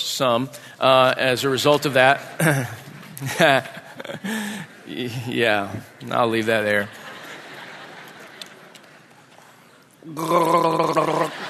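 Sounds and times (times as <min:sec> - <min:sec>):
hiss: 0:00.0 - 0:11.4
speech: 0:00.2 - 0:07.0, 0:10.0 - 0:11.4
laughter: 0:02.4 - 0:09.3, 0:10.0 - 0:11.4
person gargling: 0:10.0 - 0:11.4.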